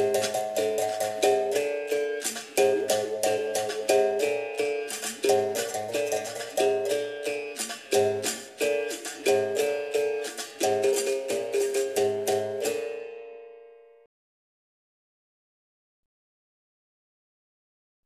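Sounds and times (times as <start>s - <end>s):
toque de benguela capoeira music: 0.0s - 13.4s.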